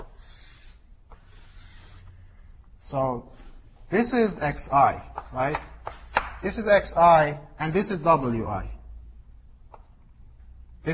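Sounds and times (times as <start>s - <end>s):
drawing tool scratching as a diagram is sketched by hand: 0.0s - 2.2s
speech: 2.9s - 8.8s.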